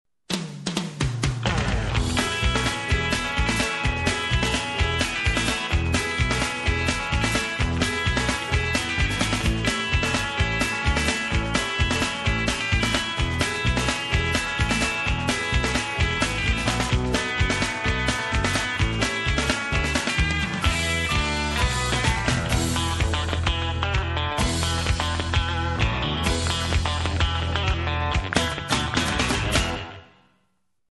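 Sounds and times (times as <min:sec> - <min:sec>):
rockabilly music: 0:00.3 - 0:30.2.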